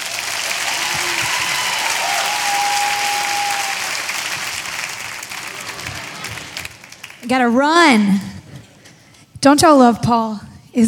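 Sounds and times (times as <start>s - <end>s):
audience clapping hands: 0.0s - 7.5s
speech: 7.3s - 8.3s, 9.4s - 10.8s.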